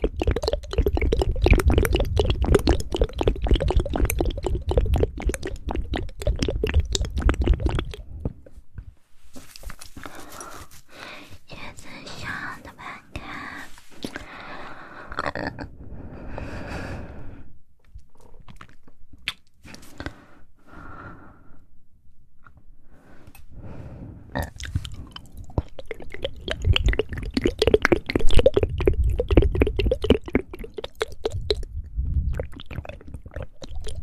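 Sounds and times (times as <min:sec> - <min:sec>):
wet mouth clicking and smacking: 0:00.0 - 0:08.1, 0:17.8 - 0:19.9, 0:24.4 - 0:34.0
breaths: 0:09.9 - 0:17.6, 0:19.6 - 0:21.8, 0:22.8 - 0:25.7.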